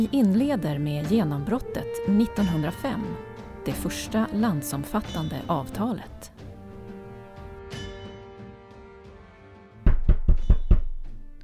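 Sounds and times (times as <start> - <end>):
speech: 0.0 - 6.3
knocking on a door: 9.8 - 11.1.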